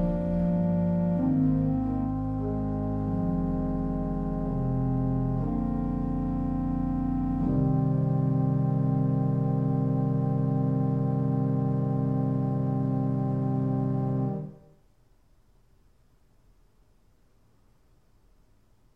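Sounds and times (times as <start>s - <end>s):
organ: 0.0s - 14.7s.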